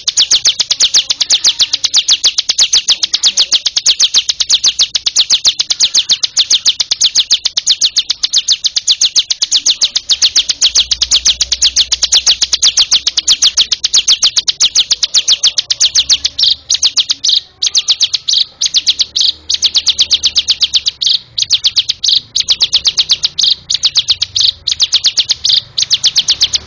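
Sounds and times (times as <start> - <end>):
bar-winged prinia high chirping song: 0.0 - 26.6.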